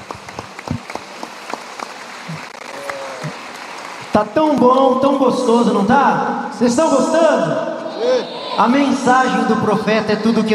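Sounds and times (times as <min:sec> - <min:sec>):
audience applauding: 0:00.0 - 0:04.3
speech: 0:04.2 - 0:10.5.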